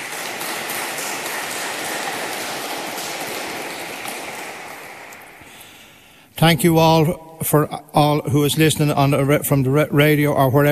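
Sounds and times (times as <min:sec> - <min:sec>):
applause: 0:00.0 - 0:06.0
speech: 0:06.4 - 0:10.7.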